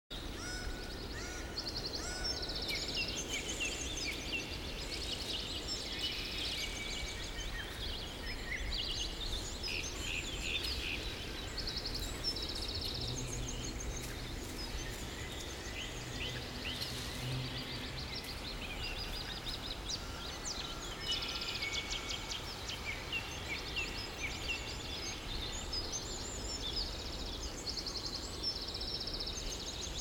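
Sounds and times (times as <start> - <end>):
birds singing: 0.1 - 30.0.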